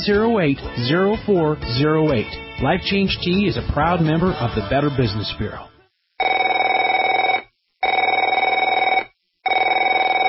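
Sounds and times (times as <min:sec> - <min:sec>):
speech: 0:00.0 - 0:05.7
telephone ringing: 0:06.2 - 0:10.2.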